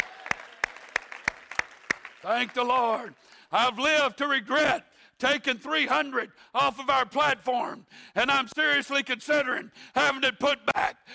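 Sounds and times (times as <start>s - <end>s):
audience clapping and cheering: 0.0s - 3.4s
speech: 2.2s - 11.1s.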